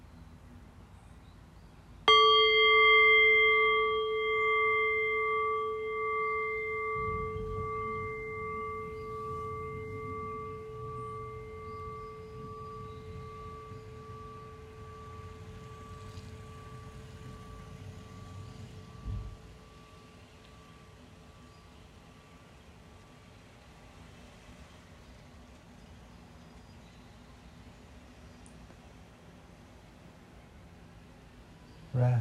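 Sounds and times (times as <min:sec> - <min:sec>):
bell ringing: 0:02.1 - 0:21.5.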